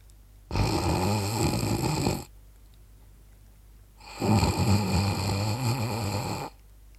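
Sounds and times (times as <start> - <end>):
soft, delicate nasal snoring: 0.5 - 2.3, 4.0 - 6.6.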